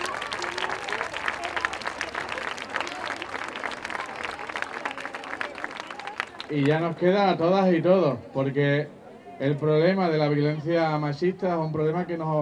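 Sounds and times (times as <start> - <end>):
audience applause: 0.0 - 6.8
faint crowd murmur: 0.0 - 12.3
speech: 6.5 - 12.3.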